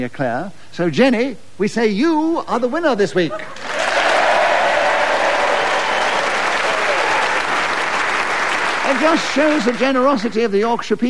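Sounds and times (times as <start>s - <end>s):
speech: 0.0s - 3.7s, 8.9s - 11.0s
audience applause: 3.6s - 10.6s.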